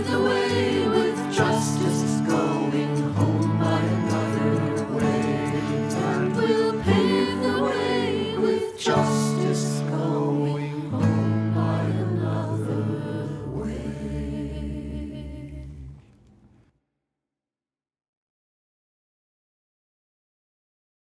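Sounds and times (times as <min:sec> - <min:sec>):
guitar intro: 0:00.0 - 0:10.2
person singing a verse: 0:00.0 - 0:15.8.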